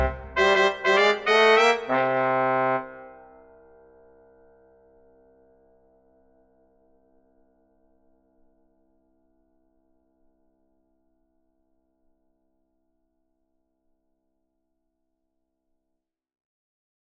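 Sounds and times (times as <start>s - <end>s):
traditional dixieland jazz combo intros: 0.0s - 2.8s.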